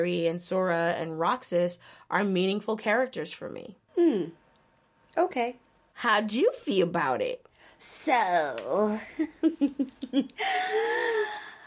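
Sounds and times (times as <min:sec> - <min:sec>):
speech: 0:00.0 - 0:04.4, 0:05.2 - 0:11.4
deep wheezy breath: 0:10.4 - 0:11.6.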